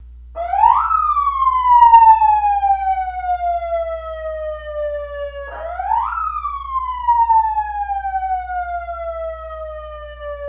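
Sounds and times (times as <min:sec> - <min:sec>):
police siren: 0:00.4 - 0:10.4.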